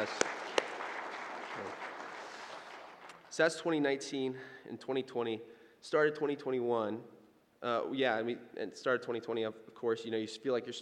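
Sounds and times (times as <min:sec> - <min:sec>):
audience applause: 0:00.0 - 0:03.4
speech: 0:03.4 - 0:10.8.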